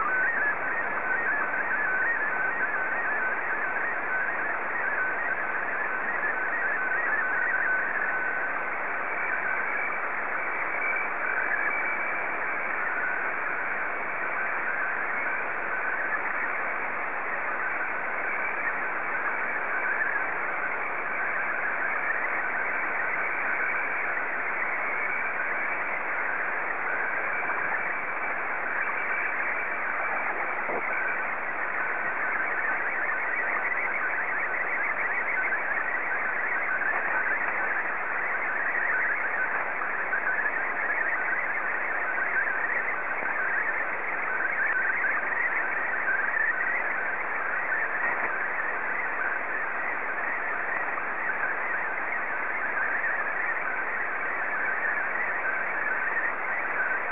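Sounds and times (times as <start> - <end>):
SSTV signal: 0.0 - 57.1.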